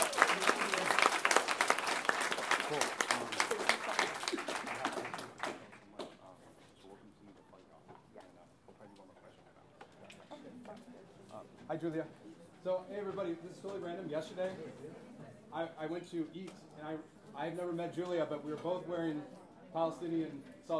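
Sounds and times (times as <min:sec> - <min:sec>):
audience applause: 0:00.0 - 0:06.0
speech: 0:11.8 - 0:20.7.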